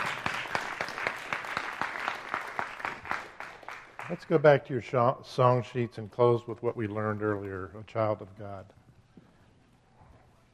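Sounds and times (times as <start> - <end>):
audience clapping in a steady rhythm: 0.0 - 4.7
speech: 4.1 - 8.8.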